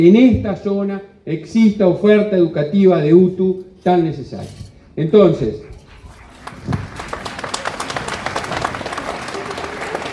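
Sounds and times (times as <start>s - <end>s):
speech: 0.0s - 5.7s
audience applause at a public meeting about a new secondary school: 6.2s - 10.1s.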